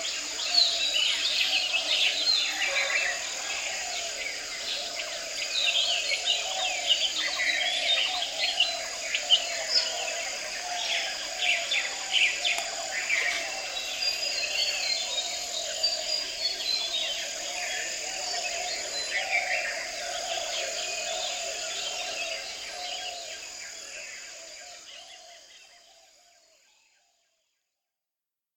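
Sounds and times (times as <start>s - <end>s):
orioles calling: 0.0s - 25.5s
doves cooing: 1.5s - 23.5s
barbets calling: 5.8s - 23.2s.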